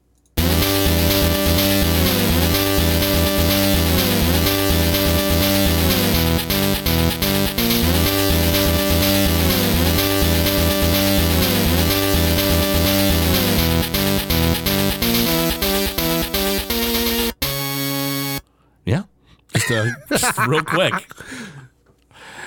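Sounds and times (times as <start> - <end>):
video game title screen music: 0.4 - 18.4
laughter: 19.6 - 21.3
speech: 19.7 - 21.3.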